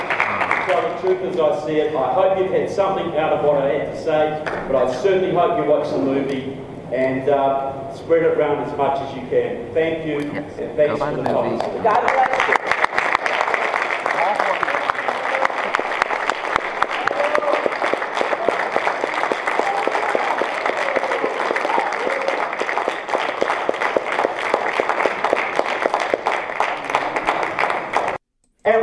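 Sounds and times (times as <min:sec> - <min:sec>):
murmuring voices: 0:00.0 - 0:00.7, 0:10.2 - 0:12.1
small crowd applauding: 0:00.0 - 0:01.4, 0:11.2 - 0:28.2
speech: 0:00.7 - 0:12.4.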